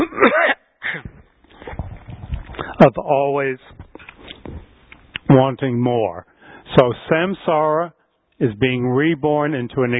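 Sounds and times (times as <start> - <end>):
person clearing throat from a tickle in the throat: 0.0 - 1.3
speech: 2.8 - 3.8, 5.4 - 9.9.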